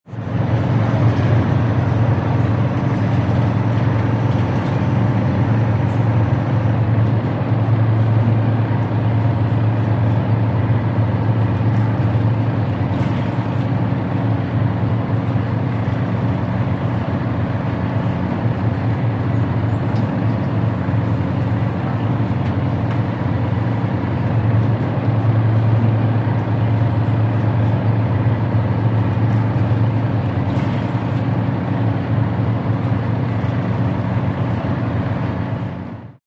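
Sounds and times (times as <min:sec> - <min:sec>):
large diesel engines idling inside a Bermuda ferry: 0:00.1 - 0:36.2.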